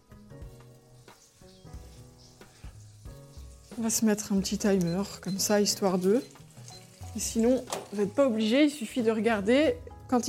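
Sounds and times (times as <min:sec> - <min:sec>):
onions sweating in a pan: 0:00.0 - 0:10.2
speech: 0:03.8 - 0:06.4, 0:07.2 - 0:10.2.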